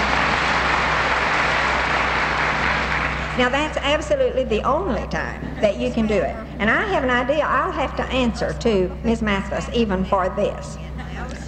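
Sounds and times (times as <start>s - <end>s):
audience applause: 0.0s - 3.5s
speech: 3.4s - 10.9s.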